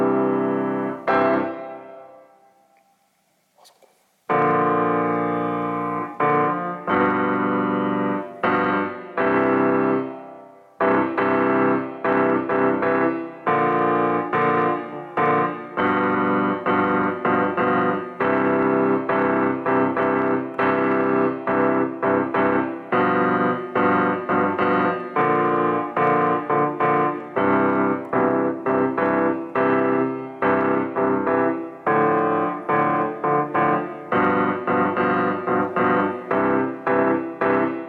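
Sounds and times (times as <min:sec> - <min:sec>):
Steinway piano: 0:00.0 - 0:37.8.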